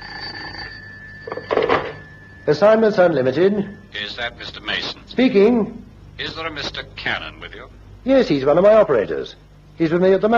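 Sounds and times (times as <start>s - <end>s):
telephone bell ringing: 0.0s - 4.2s
speech: 2.4s - 10.3s.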